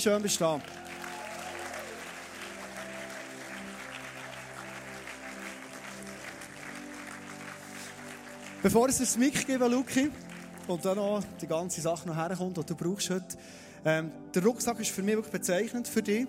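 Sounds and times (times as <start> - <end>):
speech: 0.0 - 1.0, 8.6 - 16.2
warm audience applause: 0.0 - 10.9.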